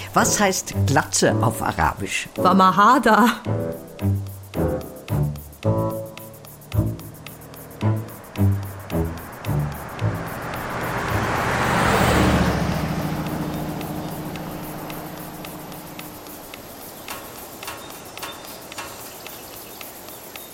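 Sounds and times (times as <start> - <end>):
speech: 0.1 - 4.2
car passing by: 6.2 - 18.2.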